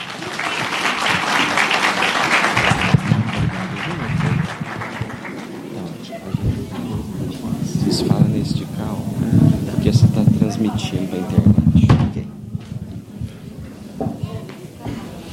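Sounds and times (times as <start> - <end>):
audience applause: 0.0 - 11.5.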